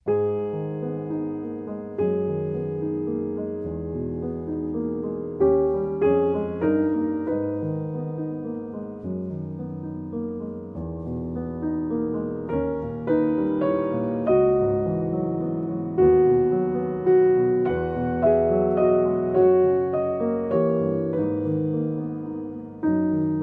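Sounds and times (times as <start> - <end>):
solo piano: 0.0 - 23.4.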